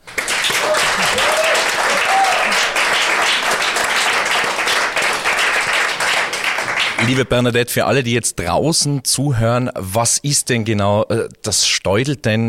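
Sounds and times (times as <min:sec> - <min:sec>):
audience applause: 0:00.0 - 0:07.2
speech: 0:07.1 - 0:12.4.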